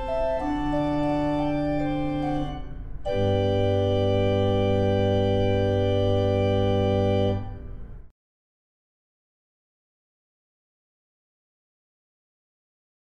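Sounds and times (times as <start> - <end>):
canzona played in a pipe room: 0.0 - 8.0.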